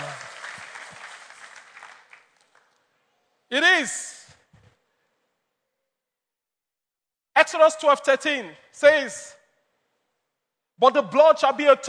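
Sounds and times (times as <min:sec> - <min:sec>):
crowd applauding: 0:00.0 - 0:02.8
speech: 0:03.5 - 0:04.2, 0:07.5 - 0:09.4, 0:10.8 - 0:11.8.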